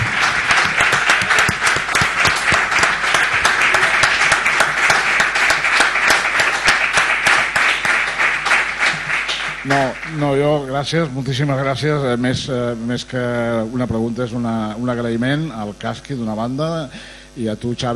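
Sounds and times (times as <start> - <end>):
applause: 0.0 - 10.5
speech: 9.7 - 17.9.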